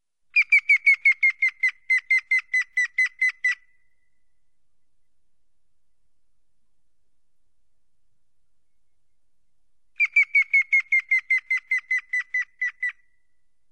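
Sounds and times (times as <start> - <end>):
grey-headed woodpecker calling: 0.4 - 3.7, 10.0 - 13.1.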